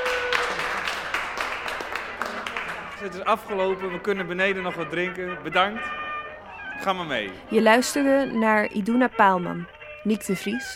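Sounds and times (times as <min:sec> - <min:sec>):
audience applause: 0:00.0 - 0:03.2
faint voices murmuring: 0:01.9 - 0:10.7
speech: 0:03.0 - 0:06.0, 0:06.8 - 0:10.7.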